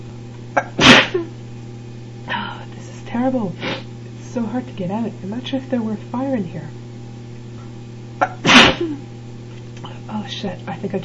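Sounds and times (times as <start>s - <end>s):
person sneezing: 0.6s - 1.3s, 3.6s - 3.9s, 8.2s - 9.0s
speech: 3.2s - 6.8s, 8.8s - 9.1s, 10.3s - 11.0s.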